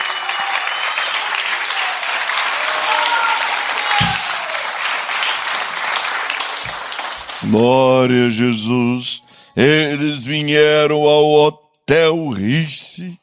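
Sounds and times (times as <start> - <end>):
audience applause: 0.0 - 7.6
speech: 7.5 - 13.2.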